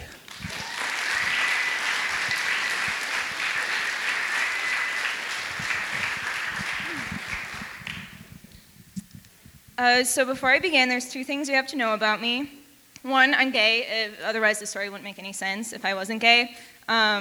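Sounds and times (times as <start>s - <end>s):
audience applause at a story slam greeting a storyteller: 0.0s - 8.2s
speech: 9.8s - 17.1s.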